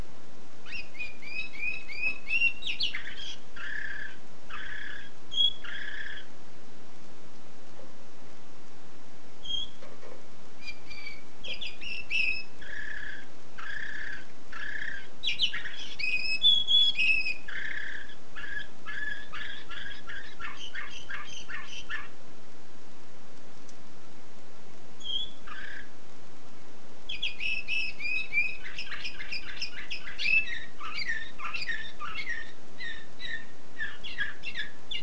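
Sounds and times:
background hiss: 0.0s - 35.0s
canary singing: 0.6s - 6.4s, 9.4s - 9.9s, 10.6s - 22.2s, 25.0s - 26.0s, 27.0s - 35.0s.

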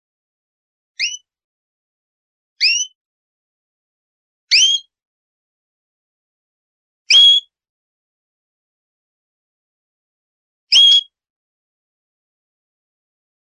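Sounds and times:
canary song with whistled notes and rapid rolling trill: 1.0s - 1.3s, 2.6s - 3.0s, 4.5s - 5.0s, 7.1s - 7.6s, 10.7s - 11.2s.

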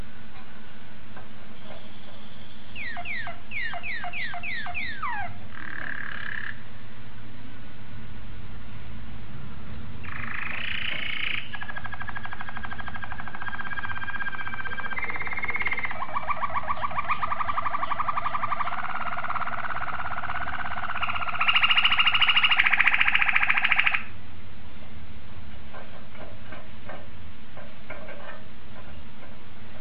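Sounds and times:
domestic canary singing: 1.6s - 6.6s, 10.0s - 24.1s.

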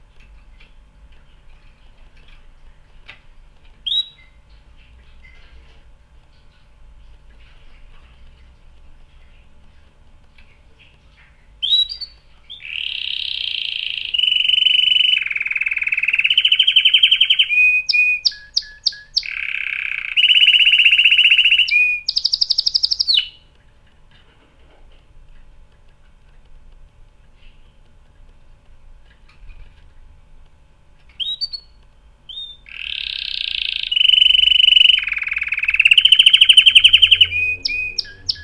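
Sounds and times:
canary singing trills: 3.8s - 4.4s, 11.6s - 23.5s, 31.1s - 38.4s.

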